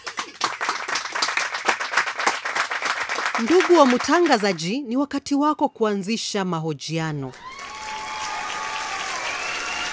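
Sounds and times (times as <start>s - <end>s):
applause for guest finance and business experts: 0.0s - 4.5s, 7.4s - 9.9s
speech: 3.4s - 7.4s.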